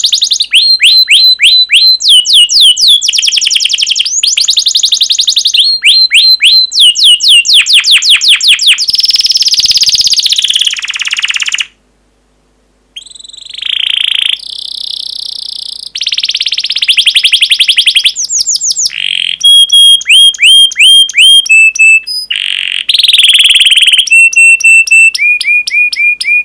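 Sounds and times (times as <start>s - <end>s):
canary singing: 0.0s - 11.8s, 13.0s - 26.4s.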